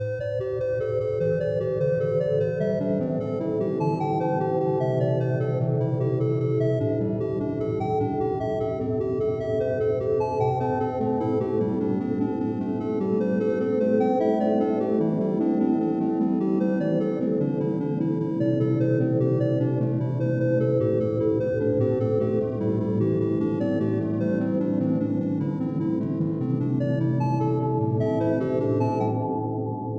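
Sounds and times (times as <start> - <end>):
music: 0.0 - 29.9.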